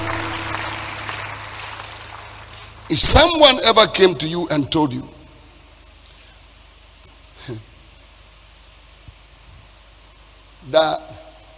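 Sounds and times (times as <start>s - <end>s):
crowd clapping hands: 0.0s - 3.4s
speech: 2.9s - 5.1s, 7.5s - 7.7s, 10.7s - 11.2s.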